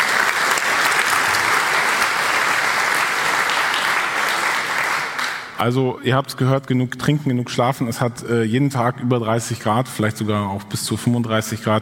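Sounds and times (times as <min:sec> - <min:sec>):
audience applause: 0:00.0 - 0:05.6
speech: 0:05.6 - 0:11.8.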